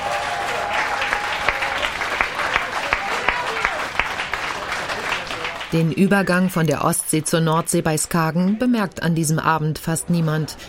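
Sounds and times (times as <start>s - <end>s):
audience applause: 0.0s - 6.3s
speech: 5.7s - 10.6s.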